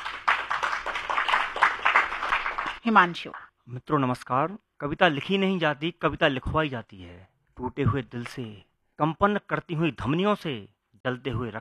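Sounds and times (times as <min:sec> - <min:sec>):
audience applause welcoming a poet at a poetry gathering: 0:00.0 - 0:02.8
speech: 0:02.8 - 0:11.5.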